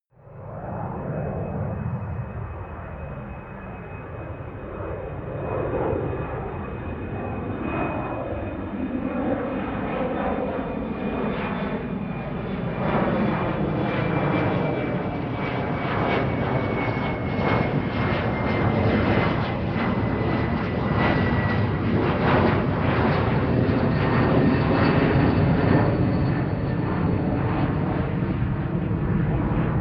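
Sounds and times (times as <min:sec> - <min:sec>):
plane landing flyby with tonal howl: 0:00.2 - 0:29.7.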